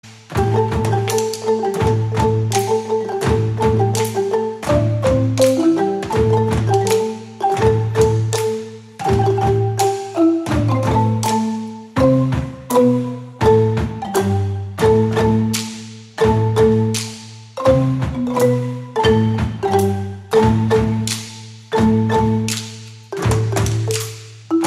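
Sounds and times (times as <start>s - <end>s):
marimba: 0.1s - 24.6s.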